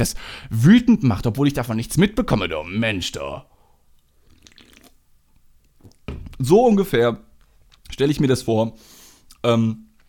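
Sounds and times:
speech: 0:00.0 - 0:03.5, 0:06.4 - 0:07.3, 0:07.9 - 0:09.8
quiet sip of a drink with wet slurps: 0:04.1 - 0:05.0
short louder knock: 0:06.1 - 0:06.4.

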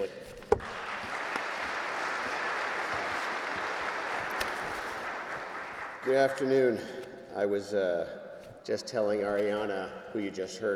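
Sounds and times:
crowd applause: 0:00.6 - 0:06.5
speech: 0:06.0 - 0:10.7.

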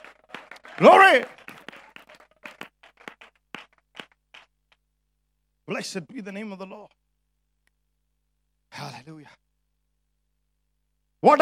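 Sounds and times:
audience clapping: 0:00.0 - 0:04.9
speech: 0:00.8 - 0:01.4, 0:05.7 - 0:07.0, 0:08.8 - 0:09.4, 0:11.2 - 0:11.4.

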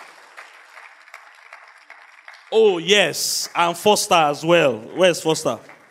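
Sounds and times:
audience applause: 0:00.0 - 0:05.8
speech: 0:02.5 - 0:05.8.

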